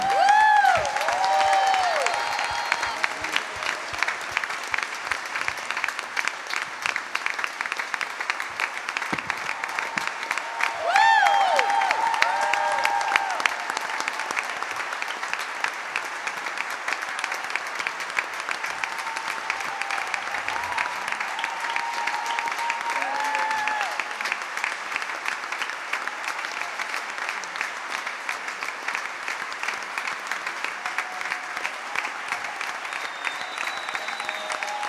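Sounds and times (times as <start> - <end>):
audience cheers and whoops: 0.0 - 4.2, 9.2 - 15.0, 16.9 - 24.4, 30.6 - 34.8
loud audience applause: 0.0 - 34.8.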